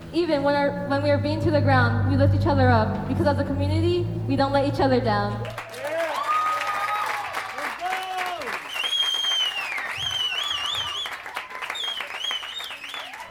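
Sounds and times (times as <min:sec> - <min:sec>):
speech: 0:00.1 - 0:05.9
audience applause: 0:05.4 - 0:13.2
high wavering cheers and whoops: 0:05.6 - 0:13.2.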